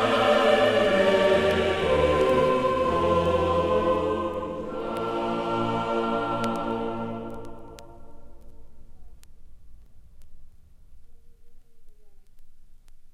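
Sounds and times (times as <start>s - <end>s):
choir singing a motet: 0.0s - 8.4s.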